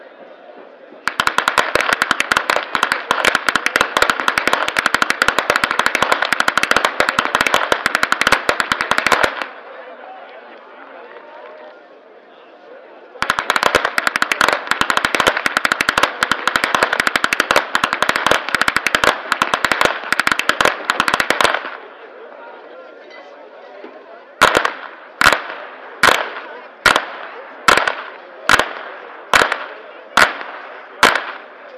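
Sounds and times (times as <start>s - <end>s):
whip cracking in Flachgau: 1.1s - 9.5s, 13.2s - 21.8s, 24.4s - 31.5s.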